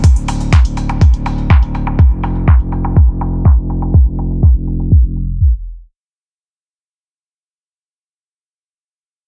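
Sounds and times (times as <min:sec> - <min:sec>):
ambient melodic techno music: 0:00.0 - 0:05.9.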